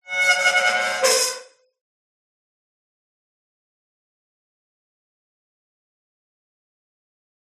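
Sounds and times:
industrial metal farm gate swinging and squeaking: 0.1 - 1.6.

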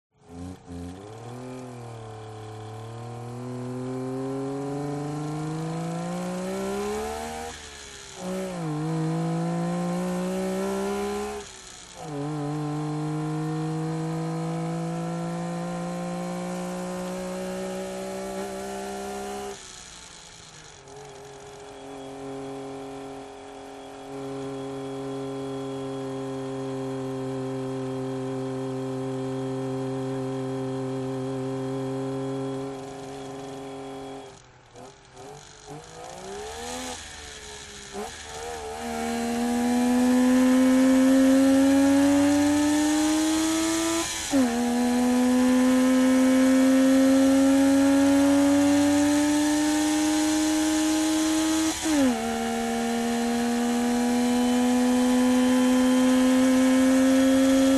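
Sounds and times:
Saab 92 car engine driving: 0.1 - 57.7.

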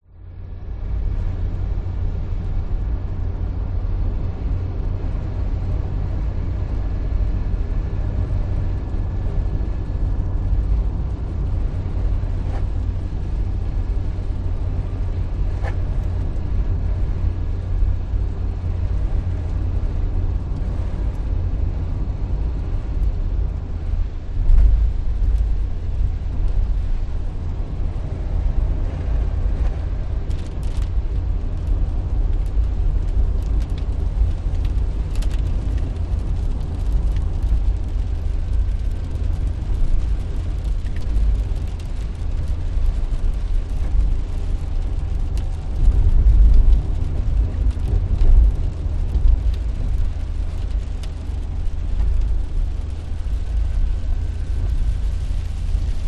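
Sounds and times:
rain: 0.0 - 56.0
car driving 100kph on wet road heard from interior: 0.1 - 56.0.

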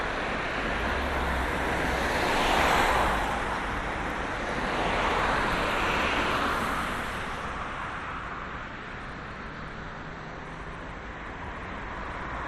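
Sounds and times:
busy town main road traffic at 60 kph with central reservation: 0.0 - 12.4.

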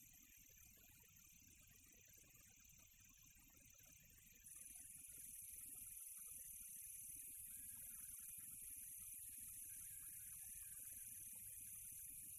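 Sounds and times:
cricket chirping on a quiet tropical night: 0.0 - 12.3.

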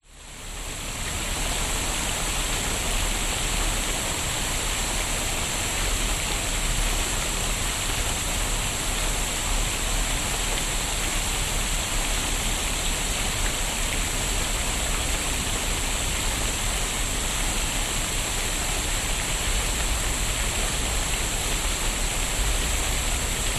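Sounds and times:
fountain in a park at the Brisbane Botanic Gardens: 0.0 - 23.5.

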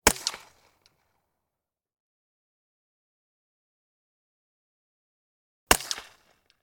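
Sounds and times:
Walther PPQ pistol: 0.0 - 1.0, 5.7 - 6.6.

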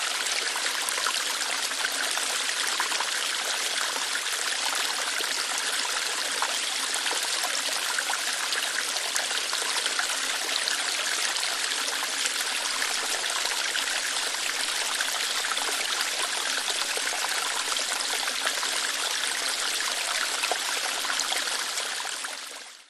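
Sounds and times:
waterfall water lightly flowing through rocks: 0.0 - 22.8.

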